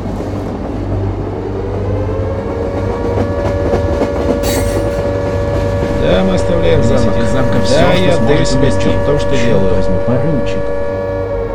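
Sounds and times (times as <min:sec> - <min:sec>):
train running on rails: 0:00.0 - 0:07.6
brief metallic squeal: 0:05.8 - 0:11.4
speech: 0:07.6 - 0:10.9.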